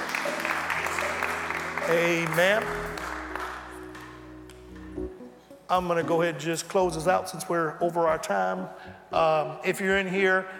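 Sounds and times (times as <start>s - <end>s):
audience hand clapping: 0.0s - 4.8s
speech: 1.9s - 2.9s, 5.7s - 10.5s.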